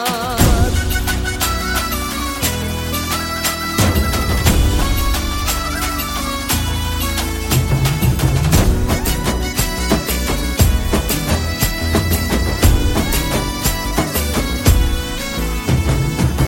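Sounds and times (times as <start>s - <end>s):
bansuri bamboo flute: 0.0s - 16.4s.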